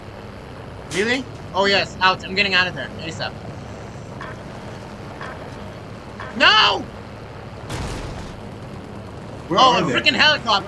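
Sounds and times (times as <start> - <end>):
speech: 0.9 - 3.5, 6.4 - 7.0, 9.5 - 10.6
video game gunfire: 7.7 - 8.6.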